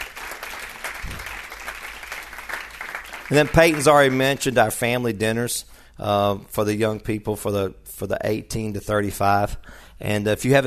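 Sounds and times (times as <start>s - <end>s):
audience clapping hands: 0.0s - 4.6s
speech: 3.3s - 10.6s.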